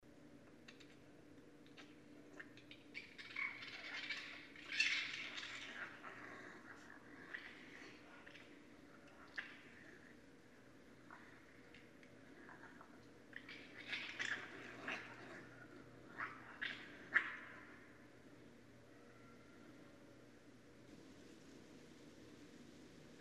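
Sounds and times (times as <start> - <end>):
raccoon squealing: 1.8 - 8.4, 12.4 - 17.8.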